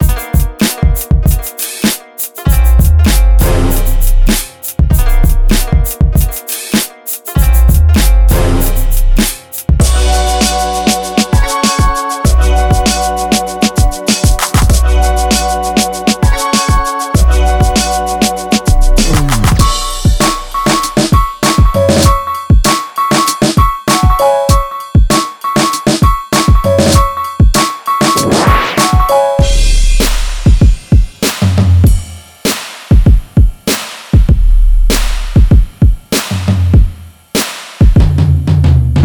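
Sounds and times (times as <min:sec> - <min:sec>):
urban drum kit: 0:00.0 - 0:39.0.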